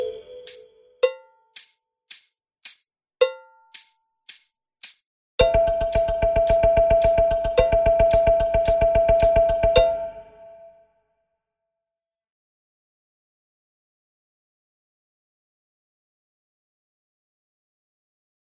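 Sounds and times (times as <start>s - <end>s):
balafon: 0.0s - 1.3s, 5.4s - 10.6s.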